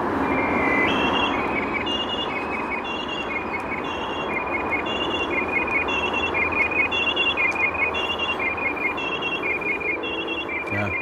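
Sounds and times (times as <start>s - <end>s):
blackbird imitating a police siren: 0.2s - 10.9s.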